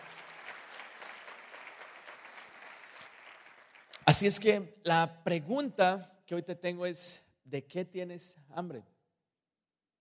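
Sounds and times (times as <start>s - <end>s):
audience applause: 0.0s - 4.1s
speech: 4.1s - 8.9s.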